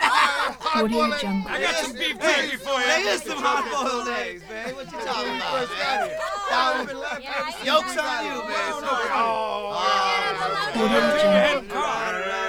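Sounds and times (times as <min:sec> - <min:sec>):
constant rowdy bar conversation: 0:00.0 - 0:12.4
laughter: 0:00.0 - 0:12.4
people hollering in a bar: 0:00.0 - 0:12.4.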